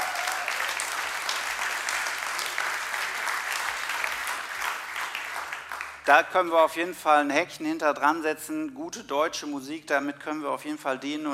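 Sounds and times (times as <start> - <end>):
audience applause: 0.0 - 6.1
speech: 6.1 - 11.3.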